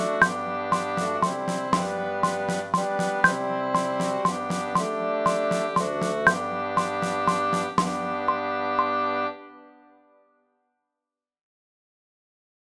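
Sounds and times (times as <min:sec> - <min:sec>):
allemande in triple time: 0:00.0 - 0:08.5.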